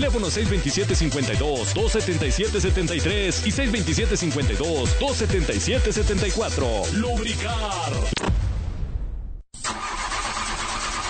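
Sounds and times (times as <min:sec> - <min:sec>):
speech: 0:00.0 - 0:08.4
car engine cranking, failing to start: 0:09.6 - 0:11.0.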